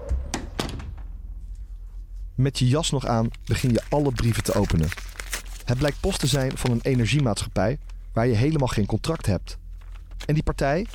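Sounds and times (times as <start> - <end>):
front door opening: 0.0 - 1.3
speech: 2.4 - 9.6, 10.2 - 10.9.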